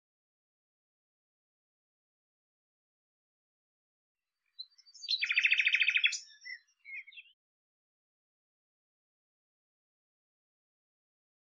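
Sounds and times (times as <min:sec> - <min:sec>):
soft bird chirps: 0:04.4 - 0:07.4.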